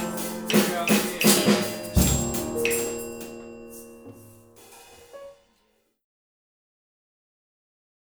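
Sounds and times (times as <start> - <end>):
piano: 0.0 - 5.4.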